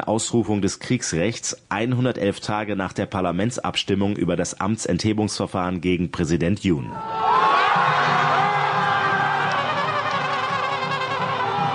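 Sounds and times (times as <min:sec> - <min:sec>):
speech: 0:00.0 - 0:08.2
crowd cheering jubilantly: 0:07.0 - 0:11.7.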